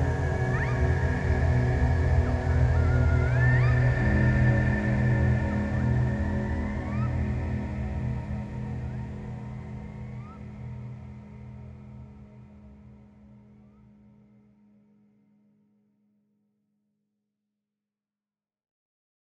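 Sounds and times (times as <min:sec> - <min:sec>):
alpha brain waves meditative trance music: 0:00.0 - 0:13.0.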